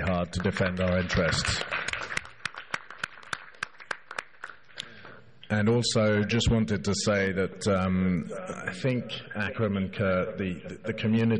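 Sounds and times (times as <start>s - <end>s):
audience applause: 0.0s - 4.6s
speech: 0.1s - 1.8s, 5.5s - 11.3s.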